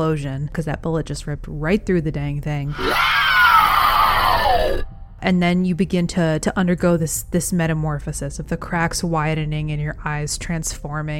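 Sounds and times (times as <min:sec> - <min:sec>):
speech: 0:00.0 - 0:03.3, 0:04.6 - 0:11.1
monster-like spider shriek: 0:02.7 - 0:04.9.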